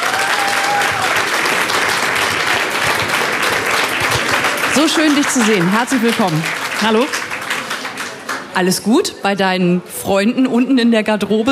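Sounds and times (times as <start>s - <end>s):
audience applause: 0.0s - 8.6s
speech: 4.8s - 7.3s, 8.6s - 11.5s.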